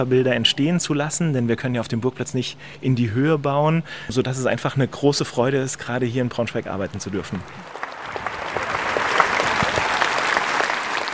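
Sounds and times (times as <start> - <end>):
speech: 0.0 - 7.8
thunderous applause from an audience: 6.9 - 11.1.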